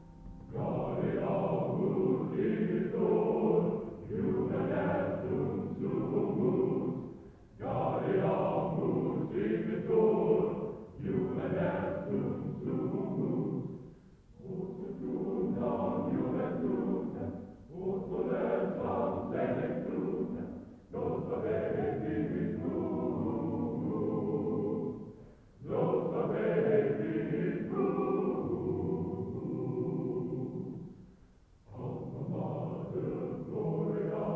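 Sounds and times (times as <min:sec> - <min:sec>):
choral song: 0:00.0 - 0:34.3.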